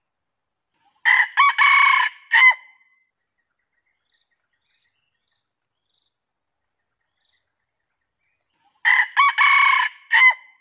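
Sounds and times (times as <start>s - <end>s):
junglefowl crowing: 1.0s - 2.6s, 8.8s - 10.5s.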